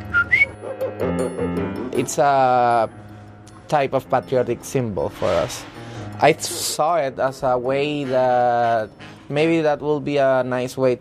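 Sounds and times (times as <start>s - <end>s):
person whistling coqui frog call imitation: 0.0s - 0.6s
speech: 2.0s - 3.1s, 3.7s - 10.9s.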